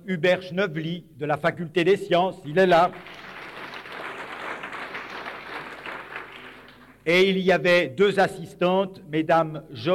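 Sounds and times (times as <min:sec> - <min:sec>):
speech: 0:00.1 - 0:03.3, 0:07.1 - 0:09.9
audience applause: 0:02.9 - 0:07.0.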